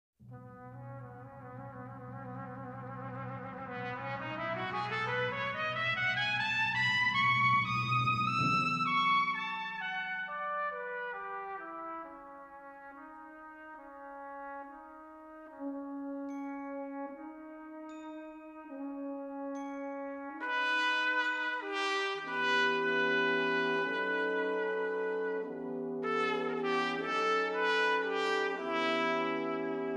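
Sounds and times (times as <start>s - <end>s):
brass instruments: 0.2s - 29.9s.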